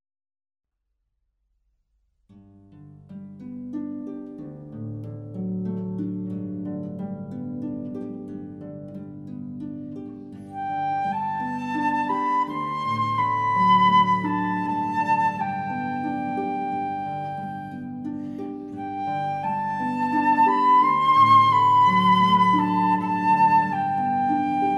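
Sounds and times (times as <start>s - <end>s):
harp: 2.6s - 24.7s
violin: 7.8s - 24.7s
flute: 10.5s - 24.7s.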